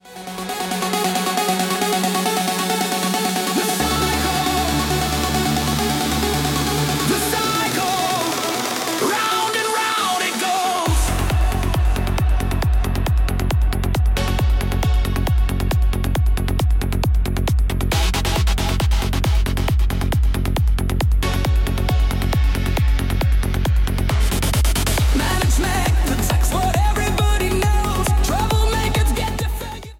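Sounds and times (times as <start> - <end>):
hardstyle remix: 0.0 - 29.9.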